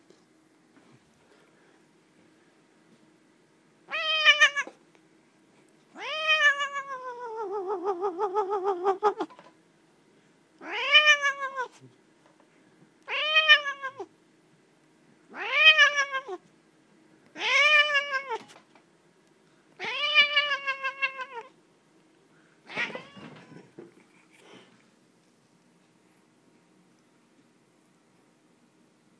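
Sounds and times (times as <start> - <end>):
shaken cat meow: 3.9 - 4.8, 6.0 - 9.3, 10.6 - 11.8, 13.1 - 14.1, 15.3 - 16.4, 17.3 - 18.5, 19.8 - 21.5, 22.7 - 23.7.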